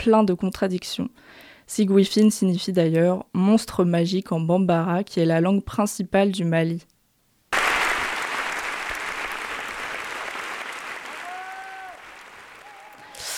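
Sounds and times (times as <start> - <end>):
speech: 0.0 - 6.9
high piercing whistled cheers: 7.6 - 13.2
theatre audience applauding: 7.6 - 13.3.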